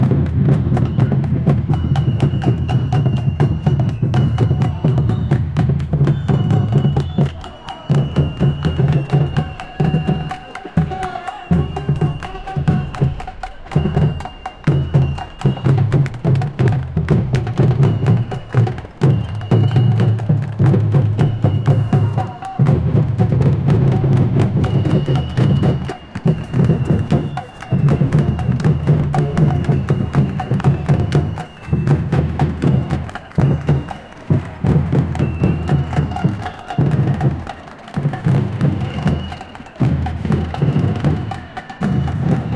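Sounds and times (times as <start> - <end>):
native protest war drums: 0.0 - 42.5.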